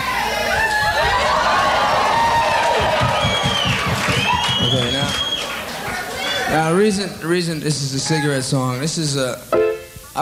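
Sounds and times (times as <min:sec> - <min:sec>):
crowd cheering and whooping: 0:00.0 - 0:06.8
speech: 0:06.6 - 0:09.6.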